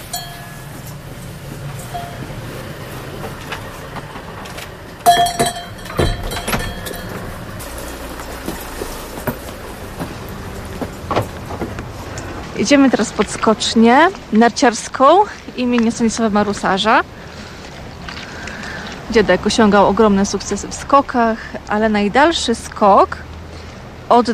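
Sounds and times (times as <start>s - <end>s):
doorbell chiming to greet guests: 0.0s - 1.1s, 1.8s - 2.4s, 5.1s - 7.5s
speech: 5.2s - 5.6s, 12.6s - 17.2s, 19.1s - 23.3s, 24.1s - 24.3s.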